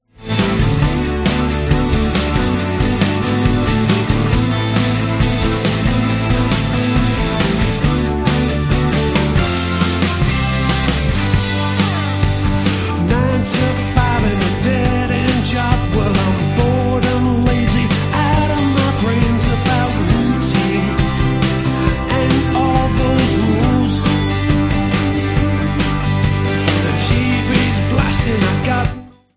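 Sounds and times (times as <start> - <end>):
dangerous guitars: 0.0 - 29.3.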